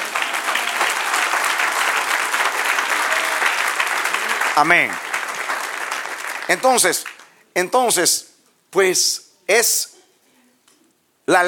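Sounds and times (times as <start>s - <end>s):
audience applause: 0.0s - 7.4s
speech: 4.6s - 5.1s, 6.5s - 9.9s, 11.3s - 11.4s.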